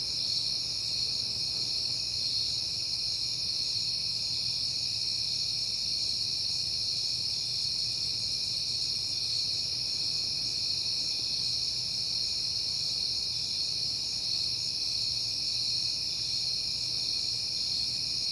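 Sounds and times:
crickets chorus: 0.0 - 18.3.

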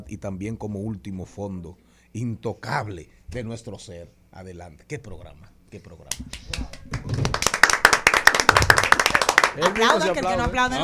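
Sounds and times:
speech: 0.1 - 7.2, 9.6 - 10.8
hand clapping applause: 6.0 - 10.2.

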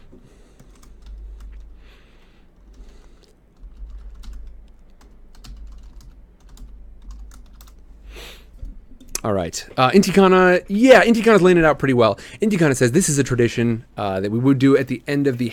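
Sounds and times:
steady low hum: 0.0 - 10.8
computer keyboard typing: 0.5 - 1.8, 2.6 - 7.8
speech: 9.2 - 15.5.

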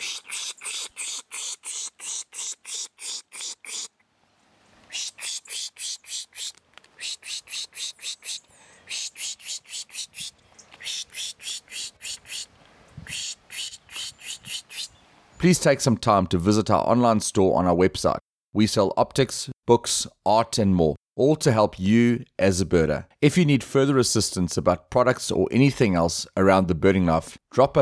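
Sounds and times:
person making hissing pish mouth noises imitating bird alarm calls: 0.0 - 4.0, 4.9 - 15.6
speech: 15.4 - 27.8.

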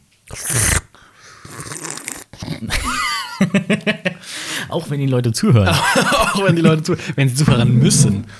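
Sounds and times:
slurping tea: 0.2 - 2.9
speech: 0.4 - 0.7, 4.7 - 8.3
laughter: 2.4 - 4.9, 5.5 - 8.2.

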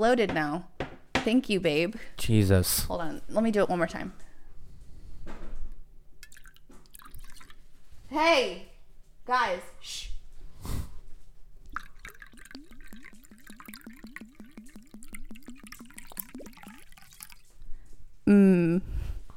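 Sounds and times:
speech: 0.0 - 4.3, 8.1 - 8.7, 9.3 - 10.8, 18.3 - 18.9
liquor glugging from a bottle into a shot glass: 6.2 - 7.6, 11.7 - 17.6.

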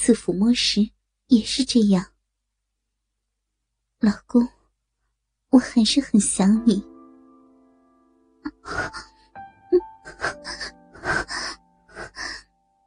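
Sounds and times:
speech: 0.0 - 2.1, 4.0 - 4.6, 5.5 - 6.9, 8.4 - 9.1
soft panting: 10.0 - 12.4.

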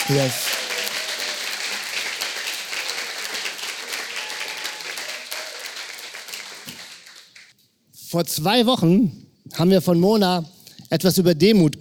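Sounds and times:
audience applause: 0.0 - 7.5
speech: 0.1 - 0.5, 8.1 - 11.7.

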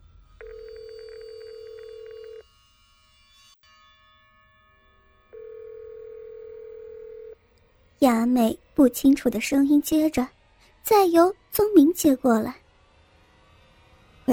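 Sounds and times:
telephone dialing: 0.4 - 2.4, 5.6 - 7.3
speech: 8.0 - 12.6.

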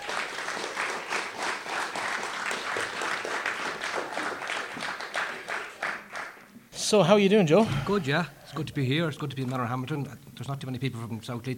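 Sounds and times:
crowd applause: 0.0 - 6.5
speech: 6.9 - 11.5.

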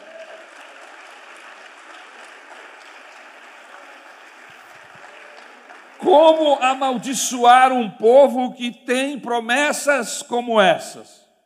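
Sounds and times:
applause: 0.0 - 6.8
speech: 6.0 - 11.2.

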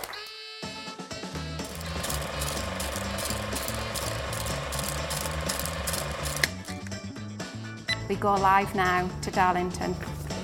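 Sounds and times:
old 1920s-style film projector rattle effect: 1.6 - 6.9
speech: 8.2 - 10.2.

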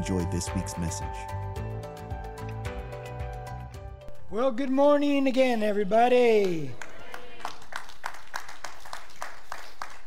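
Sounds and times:
speech: 0.0 - 1.6, 4.3 - 6.8
audience clapping: 6.2 - 10.0.

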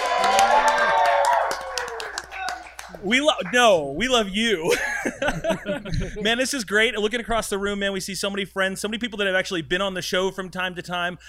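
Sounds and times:
live studio audience cheering and whooping: 0.0 - 3.2
live studio audience clapping: 0.0 - 4.3
speech: 3.0 - 11.2
laughter: 4.6 - 6.4.

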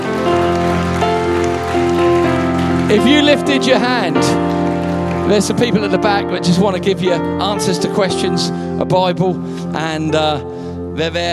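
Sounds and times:
audience applause: 0.0 - 7.0
keyboard chords: 0.0 - 11.3
speech: 2.9 - 4.5, 5.3 - 11.3.

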